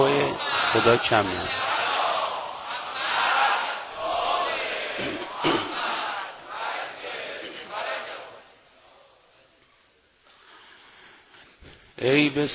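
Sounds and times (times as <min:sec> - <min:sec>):
crowd chanting a loud salawat: 0:00.0 - 0:09.6
speech: 0:00.7 - 0:01.6, 0:12.0 - 0:12.5.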